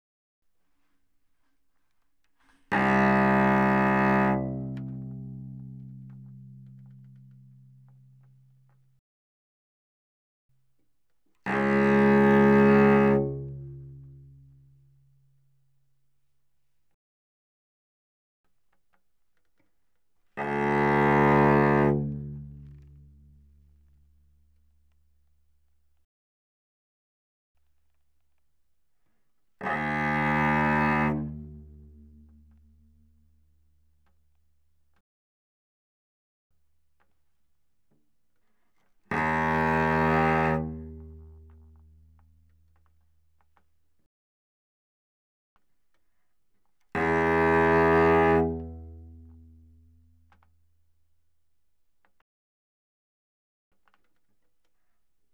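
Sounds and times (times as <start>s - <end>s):
cello bowed fortissimo on the C string: 2.5s - 8.8s, 11.4s - 14.9s, 20.4s - 24.0s, 29.6s - 33.0s, 39.1s - 42.2s, 47.0s - 50.4s.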